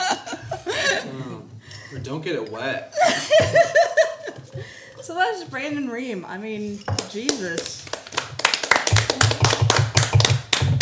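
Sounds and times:
speech: 2.0 - 3.9, 5.1 - 7.9
applause: 7.2 - 10.7.

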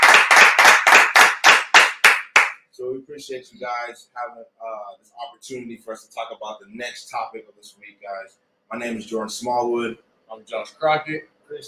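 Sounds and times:
single pair of hands clapping: 0.0 - 2.6
speech: 3.0 - 11.6.

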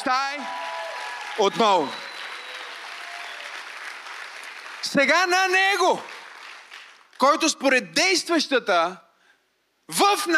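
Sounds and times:
speech: 0.0 - 0.5, 1.4 - 2.0, 4.9 - 6.1, 7.2 - 9.0, 9.9 - 10.3
few people clapping at the back: 0.0 - 7.4.

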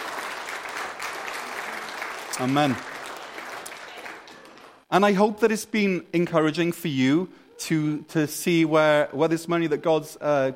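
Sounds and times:
audience round of applause: 0.0 - 4.9
speech: 2.4 - 2.9, 4.9 - 10.5.

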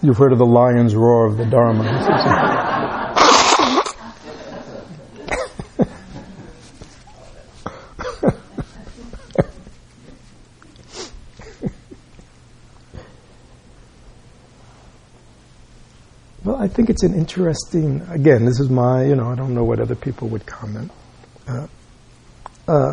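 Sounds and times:
speech: 0.0 - 2.7, 16.9 - 21.8, 22.7 - 22.9
laughter: 1.4 - 9.8
nose blowing: 3.1 - 4.0, 10.8 - 12.0.

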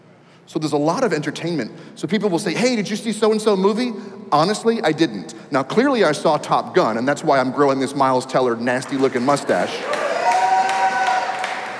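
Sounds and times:
speech: 0.5 - 10.0
audience clapping: 8.7 - 11.7.

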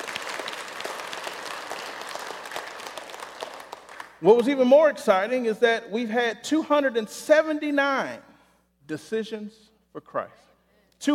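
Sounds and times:
audience applause: 0.0 - 4.2
speech: 4.2 - 8.3, 8.9 - 11.1.

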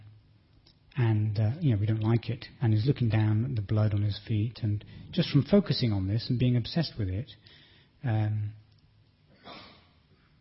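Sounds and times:
speech: 1.0 - 8.6
breathing into a microphone: 4.8 - 5.2, 7.4 - 8.0.

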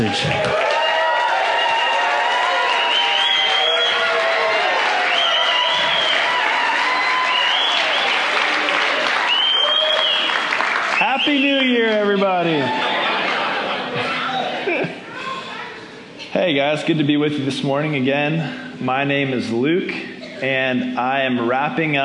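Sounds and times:
speech: 0.0 - 0.5, 16.5 - 22.0
audience cheering and applauding: 0.0 - 14.6
laughter: 11.8 - 15.6, 20.0 - 20.6.

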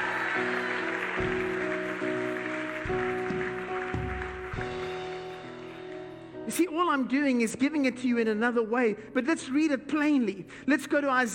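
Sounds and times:
crowd clapping and cheering: 0.0 - 6.4
organ or keyboard chords: 0.0 - 6.5
speech: 6.6 - 11.3.

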